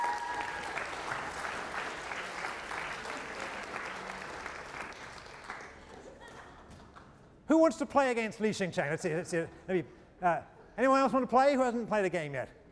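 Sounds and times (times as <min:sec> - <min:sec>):
audience round of applause: 0:00.0 - 0:06.2
speech: 0:07.5 - 0:12.6.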